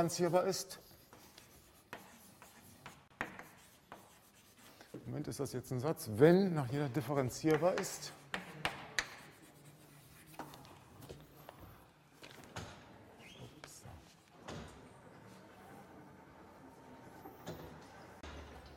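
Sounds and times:
speech: 0:00.0 - 0:00.9, 0:05.1 - 0:08.2
faint writing during a mathematics lecture: 0:00.0 - 0:05.1, 0:07.5 - 0:11.8
sharp taps and knocks: 0:07.5 - 0:09.2.

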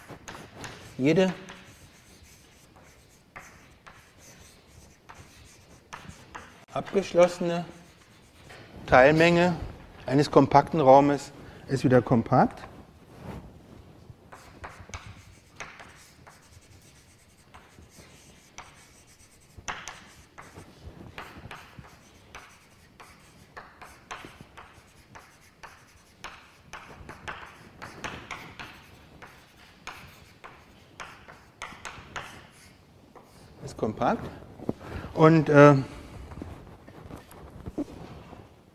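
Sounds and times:
pen handwriting on a surface during a mathematics lecture: 0:00.0 - 0:08.6, 0:14.3 - 0:33.5
speech: 0:01.0 - 0:01.4, 0:06.8 - 0:07.8, 0:08.9 - 0:12.7, 0:35.2 - 0:35.9.

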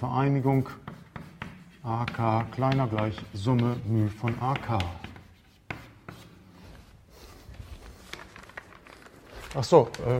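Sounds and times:
speech: 0:00.0 - 0:01.0, 0:01.8 - 0:05.1, 0:09.5 - 0:10.1
handwriting strokes while working through a maths derivation: 0:00.2 - 0:08.0
writing tip tapping: 0:00.8 - 0:06.3.

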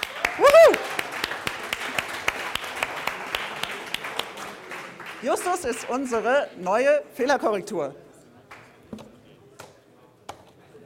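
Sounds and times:
audience applause: 0:00.0 - 0:06.4
speech: 0:05.2 - 0:08.0.

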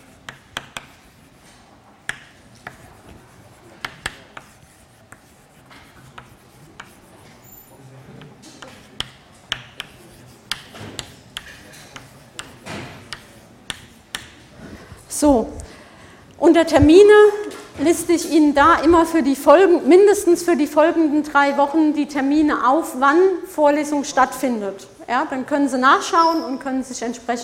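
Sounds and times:
address being written on a board during a lecture: 0:00.0 - 0:14.5
speech: 0:15.2 - 0:15.5, 0:16.5 - 0:27.4.

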